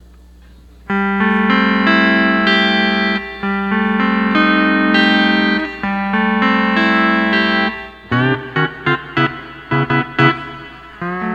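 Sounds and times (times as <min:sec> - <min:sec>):
12-string lap guitar playing: 0:00.9 - 0:11.3.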